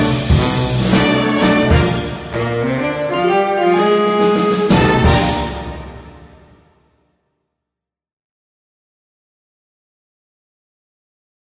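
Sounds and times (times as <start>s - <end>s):
swing music: 0.0s - 6.6s.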